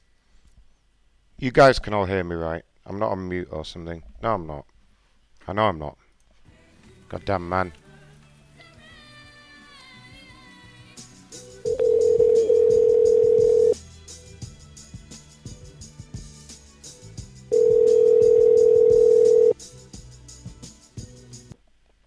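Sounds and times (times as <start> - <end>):
speech: 1.4 - 4.7, 5.5 - 6.0, 7.1 - 7.8
telephone line tones after a call was cut off: 11.7 - 13.8, 17.5 - 19.6.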